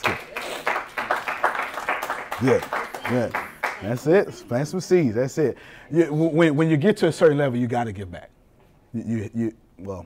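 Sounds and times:
group of people clapping in rhythm: 0.0s - 4.2s
speech: 2.4s - 10.0s.

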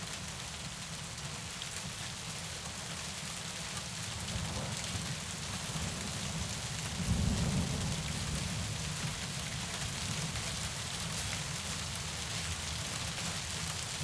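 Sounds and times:
heavy rain: 0.0s - 14.0s
light thunder rumbling: 6.0s - 9.4s.

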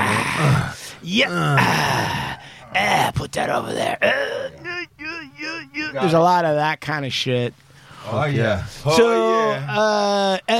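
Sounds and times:
man imitating an old man groaning while assembling things: 0.0s - 3.1s, 3.9s - 5.6s
speech: 0.4s - 4.3s, 5.9s - 10.5s.

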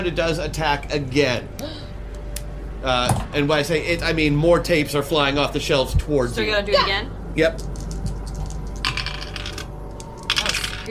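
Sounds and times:
speech: 0.0s - 1.8s, 2.8s - 7.7s
steady low hum: 0.0s - 10.8s
dice clattering across a hard table: 7.6s - 10.8s.

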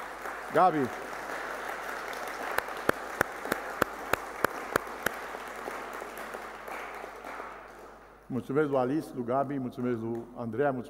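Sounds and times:
audience applause: 0.0s - 8.0s
speech: 0.5s - 1.0s, 8.3s - 10.8s.

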